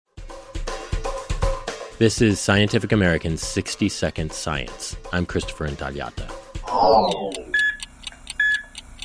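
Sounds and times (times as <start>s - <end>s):
speech: 2.0s - 7.5s
heart monitor beeping at normal heart rhythm: 6.8s - 9.0s.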